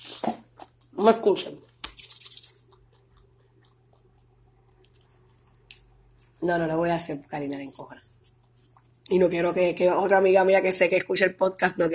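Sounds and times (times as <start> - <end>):
person chewing food: 0.0 - 6.5, 8.1 - 9.2
speech: 1.0 - 1.7, 6.4 - 8.2, 9.1 - 11.9.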